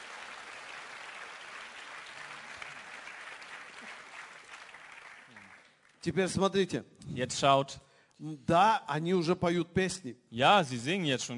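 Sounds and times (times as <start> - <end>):
applause: 0.0 - 6.2
speech: 6.0 - 11.3.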